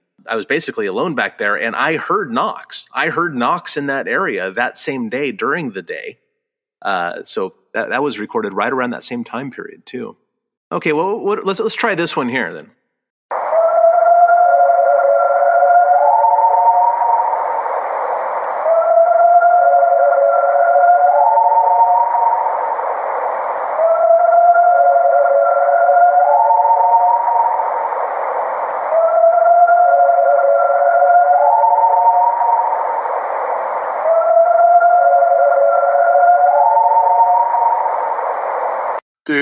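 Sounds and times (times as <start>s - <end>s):
speech: 0.2s - 6.2s, 6.8s - 12.8s
alleged Sasquatch howling call in three layered pitches: 13.3s - 39.0s.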